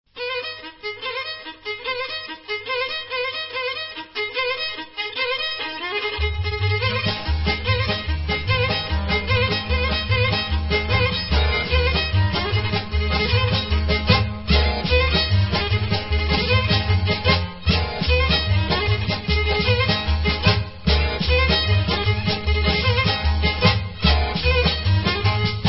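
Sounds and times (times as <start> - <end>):
Serbian kolo folk dance music: 0.1 - 25.6.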